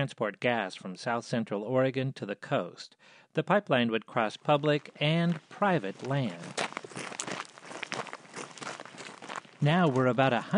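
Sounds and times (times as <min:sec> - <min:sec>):
speech: 0:00.0 - 0:07.1, 0:09.6 - 0:10.5
footsteps hiking up a steep wooded hillside in Oregon: 0:04.5 - 0:10.5.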